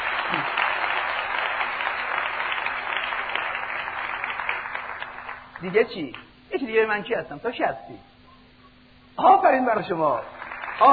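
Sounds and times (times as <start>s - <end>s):
audience applause: 0.0s - 5.6s, 10.3s - 10.9s
speech: 5.6s - 8.1s, 9.2s - 10.9s.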